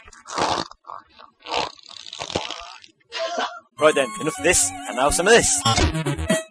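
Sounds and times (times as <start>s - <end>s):
fart: 0.0s - 2.9s
speech: 3.8s - 6.4s.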